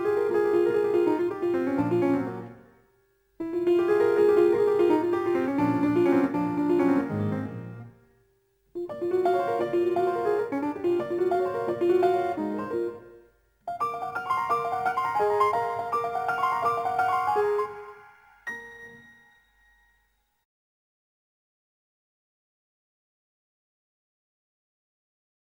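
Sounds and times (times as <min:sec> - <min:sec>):
piano music: 0:00.0 - 0:02.8, 0:03.4 - 0:08.1, 0:08.8 - 0:19.8.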